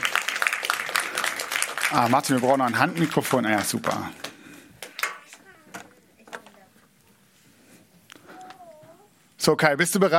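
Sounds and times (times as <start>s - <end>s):
audience clapping: 0.0s - 5.4s
speech: 1.9s - 4.2s, 9.5s - 10.1s.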